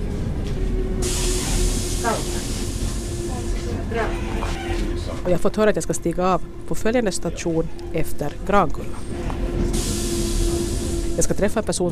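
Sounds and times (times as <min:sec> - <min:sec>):
local commuter train rumble with droning hum: 0:00.0 - 0:11.9
rushing hiss inside a local commuter train: 0:01.0 - 0:03.7, 0:09.7 - 0:11.3
speech: 0:05.2 - 0:09.4, 0:11.2 - 0:11.9.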